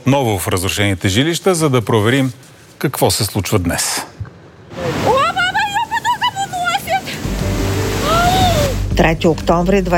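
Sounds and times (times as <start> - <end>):
speech: 0.0 - 4.2, 9.0 - 9.9
floodwater in Elenite: 4.7 - 8.9.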